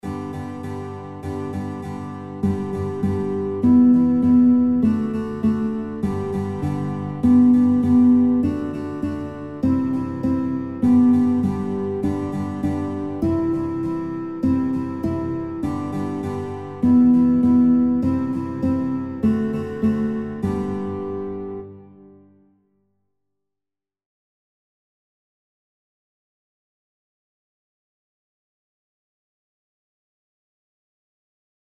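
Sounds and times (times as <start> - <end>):
guitar: 0.0 - 22.6.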